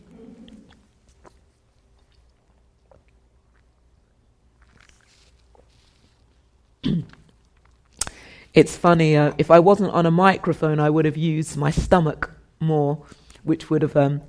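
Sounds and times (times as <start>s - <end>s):
speaker sipping water: 0.0s - 8.2s
speech: 8.6s - 14.2s.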